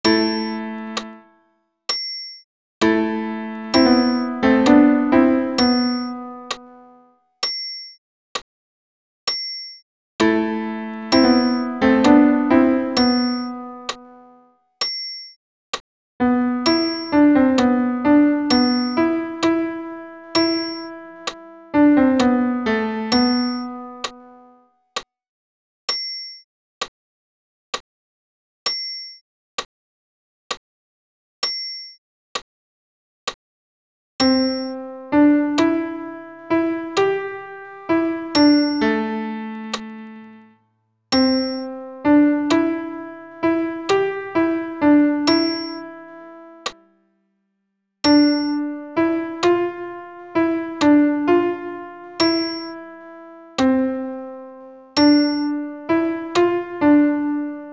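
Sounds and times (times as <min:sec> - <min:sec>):
solo piano: 0:00.0 - 0:01.3, 0:02.8 - 0:07.1, 0:10.2 - 0:14.4, 0:16.2 - 0:24.6, 0:34.2 - 0:40.5, 0:41.1 - 0:46.9, 0:48.0 - 0:57.7.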